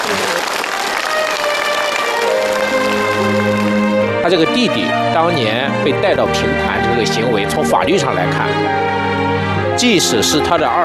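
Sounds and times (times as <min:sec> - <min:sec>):
audience applause: 0:00.0 - 0:04.8
speech: 0:04.3 - 0:09.0, 0:09.8 - 0:10.8.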